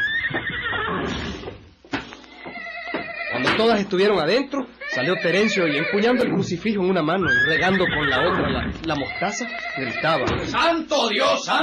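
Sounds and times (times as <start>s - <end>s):
mares neighing: 0.0s - 1.6s, 2.3s - 3.8s, 4.8s - 10.6s
speech: 3.6s - 11.6s.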